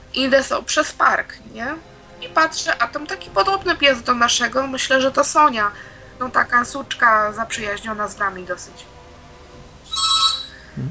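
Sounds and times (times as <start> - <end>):
speech: 0.2 - 8.9
electronic doorbell ringing: 9.9 - 10.6.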